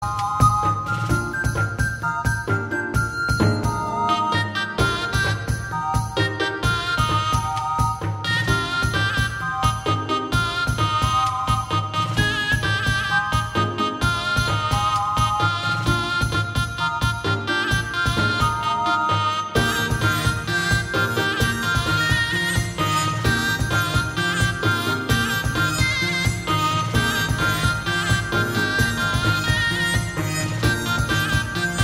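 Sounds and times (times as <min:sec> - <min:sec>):
bardcore medieval-style music: 0:00.0 - 0:31.8.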